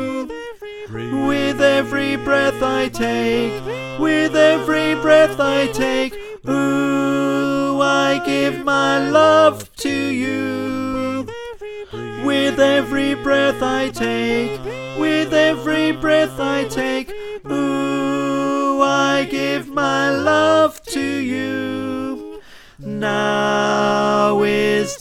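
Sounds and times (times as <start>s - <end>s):
choir singing: 0.0s - 24.9s
tenor voice: 0.9s - 20.5s.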